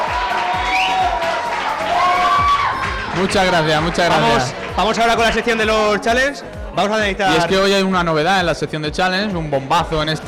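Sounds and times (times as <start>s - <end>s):
audience applause and cheering: 0.0s - 5.8s
speech: 3.2s - 10.2s.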